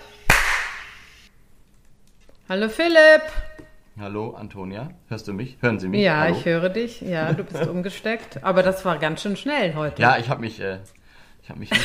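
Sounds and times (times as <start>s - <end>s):
clapperboard snap: 0.3s - 1.2s
speech: 2.5s - 11.8s
laughter: 7.0s - 8.1s.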